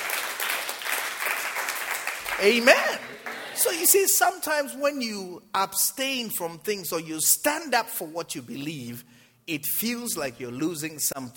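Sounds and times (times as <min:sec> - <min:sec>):
church congregation clapping: 0:00.0 - 0:04.2
speech: 0:02.4 - 0:11.3.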